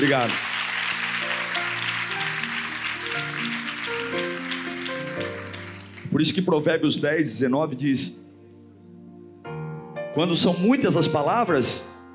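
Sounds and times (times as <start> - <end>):
speech: 0.0 - 0.5, 6.2 - 8.2, 10.2 - 11.9
audience applause: 0.0 - 6.2.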